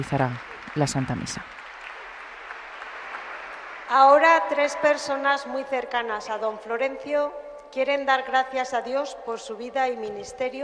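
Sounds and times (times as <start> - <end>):
speech: 0.0 - 1.6, 3.9 - 10.6
applause in the Cathedral of Pamplona: 0.0 - 5.1.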